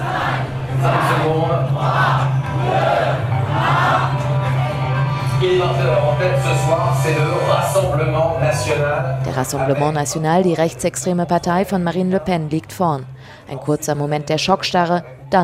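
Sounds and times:
crowd counting down the last seconds: 0.0s - 5.3s
speech: 6.2s - 15.4s.

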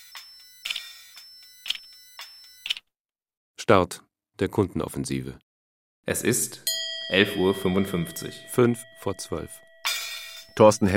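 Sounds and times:
speech: 3.7s - 5.4s, 6.1s - 9.6s, 10.6s - 10.9s
electronic gong farewell fanfare in shop: 6.7s - 10.6s.

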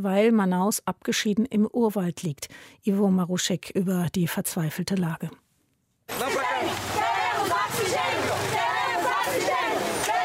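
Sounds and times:
speech: 0.0s - 5.4s, 6.1s - 6.9s
protesting crowd chanting outside hospital: 6.1s - 10.2s.

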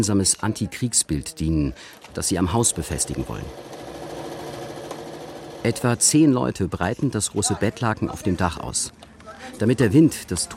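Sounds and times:
speech: 0.0s - 3.8s, 5.6s - 10.5s
sewing machine stitching bedsheets together: 2.2s - 6.1s.

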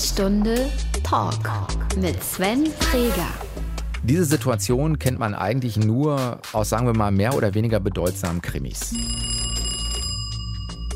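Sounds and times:
speech: 0.2s - 9.4s
telephone ringing with an electronic tone: 8.9s - 10.9s.

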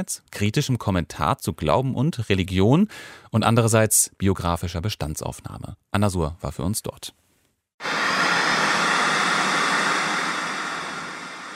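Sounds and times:
speech: 0.0s - 7.2s
white noise from art installation: 7.8s - 11.5s.

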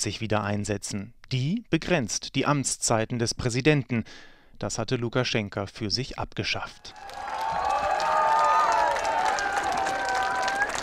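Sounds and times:
speech: 0.0s - 7.6s
crowd applauding: 6.9s - 10.8s.

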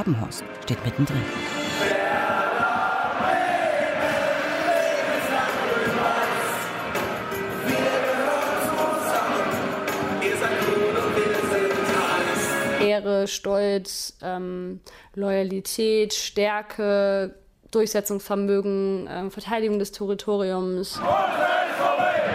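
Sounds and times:
speech: 0.0s - 1.6s, 13.2s - 22.0s
football ultras roaring and chanting: 1.7s - 12.8s, 21.0s - 22.3s.

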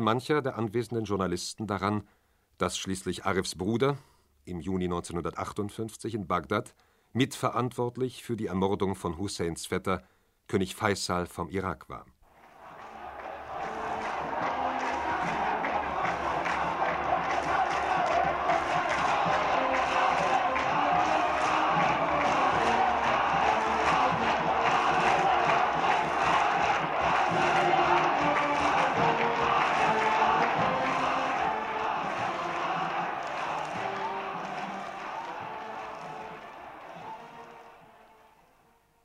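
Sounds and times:
speech: 0.0s - 12.2s
large crowd roaring and cheering in the streets: 12.3s - 38.6s
sharp claps and bangs: 12.4s - 37.5s.

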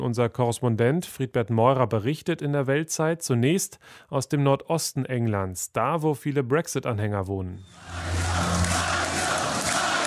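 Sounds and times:
speech: 0.0s - 8.8s
low hum: 7.6s - 9.3s
recorded crowd chanting played back at a Brexit Party rally in Sunderland: 7.7s - 10.0s.

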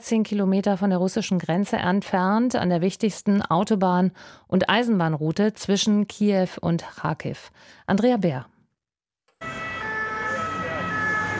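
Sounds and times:
speech: 0.0s - 8.5s
ambulance siren on the way: 9.4s - 11.3s.

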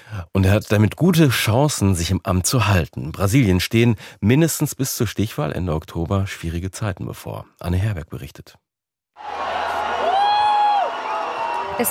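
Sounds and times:
speech: 0.1s - 8.6s
Lula supporters cheering on Praça São Salvador in Rio de Janeiro on election night: 9.2s - 11.8s.

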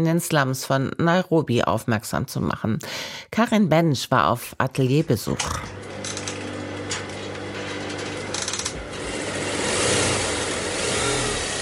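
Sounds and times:
speech: 0.0s - 5.8s
sewing machine rattling: 5.8s - 11.6s.

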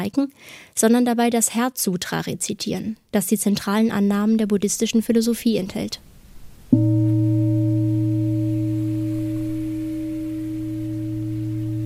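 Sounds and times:
speech: 0.0s - 6.1s
gong ringing: 6.7s - 11.8s.

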